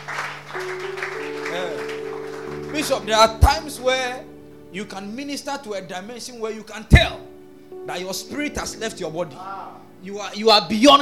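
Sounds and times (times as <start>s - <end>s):
audience applauding: 0.0s - 3.6s
speech: 2.8s - 7.3s, 7.9s - 11.0s.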